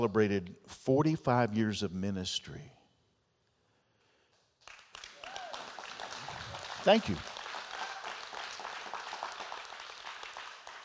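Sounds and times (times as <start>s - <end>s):
speech: 0.0s - 2.8s, 6.8s - 7.3s
audience applause: 4.6s - 10.8s.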